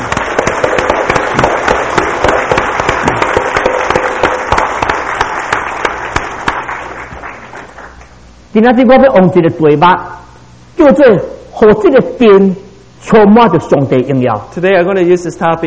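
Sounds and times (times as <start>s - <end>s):
audience clapping: 0.0s - 8.2s
speech: 8.6s - 10.1s, 10.8s - 15.6s.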